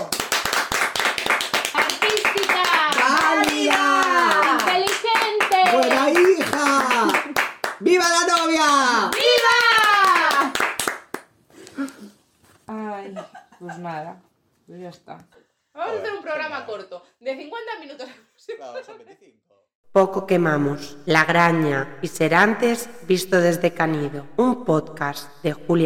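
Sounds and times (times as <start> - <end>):
audience applause: 0.0 - 11.2
speech: 13.8 - 25.8.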